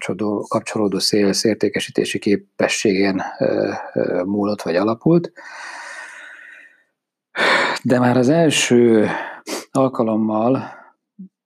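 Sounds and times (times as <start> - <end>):
speech: 0.0 - 5.8, 7.4 - 10.8
person with a cold sniffling: 5.4 - 6.7, 9.1 - 9.8.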